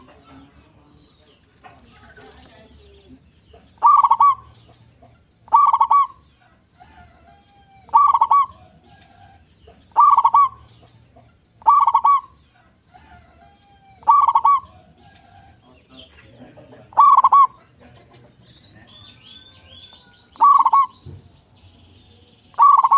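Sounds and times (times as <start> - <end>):
zebra dove cooing: 3.6 - 15.6, 16.8 - 17.8, 19.3 - 21.0, 22.5 - 22.9.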